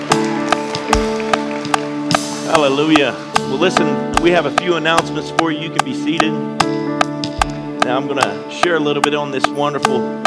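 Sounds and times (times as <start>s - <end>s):
audience clapping hands in a steady beat: 0.0s - 4.4s
sustained humming musical tones from instruments or organ: 0.0s - 10.2s
speech: 2.6s - 6.8s, 7.9s - 10.2s.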